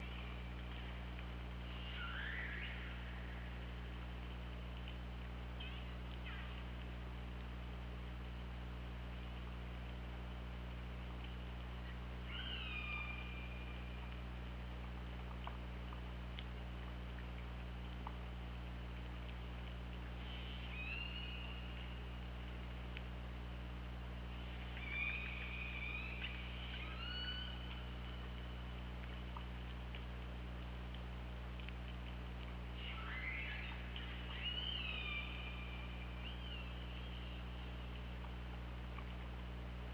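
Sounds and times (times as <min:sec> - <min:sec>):
low underwater hum: 0:00.0 - 0:39.9
killer whale calls: 0:01.6 - 0:03.6, 0:12.3 - 0:14.0, 0:20.2 - 0:22.0, 0:24.4 - 0:28.2, 0:32.8 - 0:37.4.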